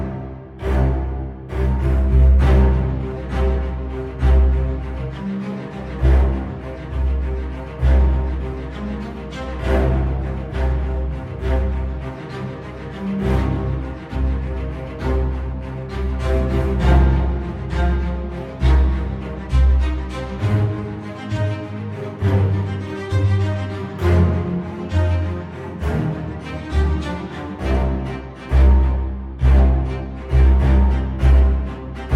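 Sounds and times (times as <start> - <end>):
low strings: 0.0 - 32.1.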